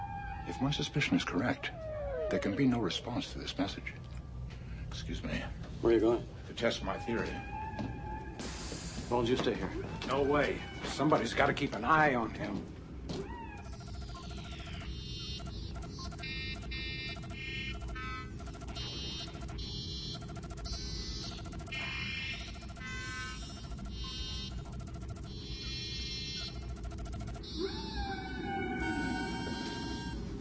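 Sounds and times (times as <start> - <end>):
humpback whale song: 0.0 - 2.9, 13.2 - 30.3
speech: 0.5 - 4.2, 4.9 - 8.0, 9.1 - 12.7.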